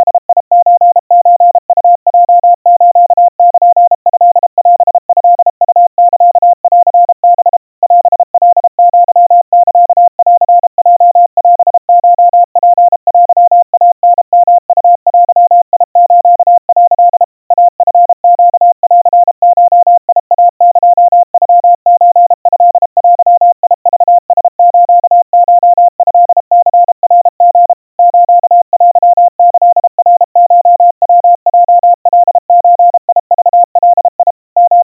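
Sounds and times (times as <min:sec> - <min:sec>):
crispy 700 Hz Morse code tones: 0:00.0 - 0:34.8.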